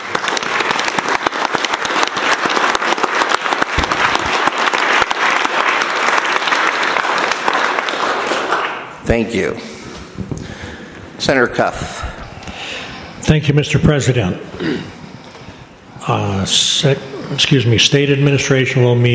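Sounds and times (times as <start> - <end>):
round of applause: 0.0 - 9.0
speech: 9.1 - 10.3, 11.2 - 12.0, 13.3 - 14.9, 16.1 - 19.1.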